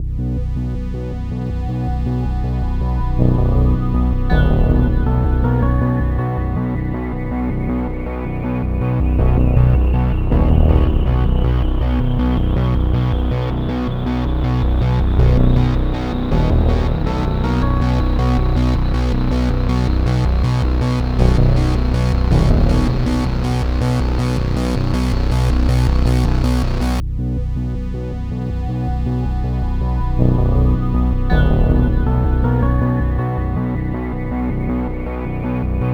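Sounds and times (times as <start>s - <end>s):
rising tension music: 0.0s - 35.9s.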